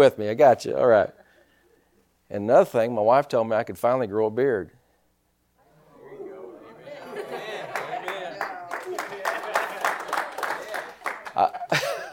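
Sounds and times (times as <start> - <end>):
speech: 0.0 - 1.2, 2.3 - 4.8
laughter: 5.8 - 12.1
audience clapping: 7.4 - 12.1.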